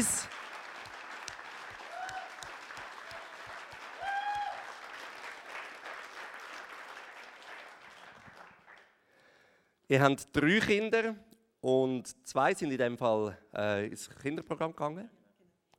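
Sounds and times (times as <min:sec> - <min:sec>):
audience applause: 0:00.0 - 0:08.9
speech: 0:09.9 - 0:15.2.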